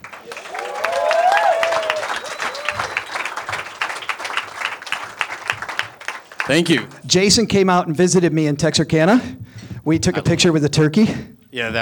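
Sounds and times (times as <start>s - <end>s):
audience applause: 0.0s - 7.2s
crowd cheer or whoop: 0.0s - 7.4s
speech: 6.5s - 11.7s.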